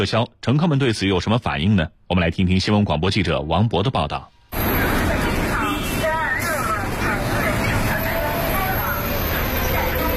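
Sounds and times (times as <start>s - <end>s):
speech: 0.0s - 4.4s
route 126 city bus pulling into a stop: 4.5s - 10.1s.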